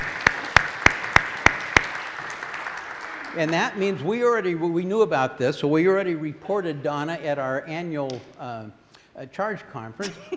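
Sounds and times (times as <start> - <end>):
church congregation clapping: 0.0 - 3.7
speech: 3.4 - 10.3.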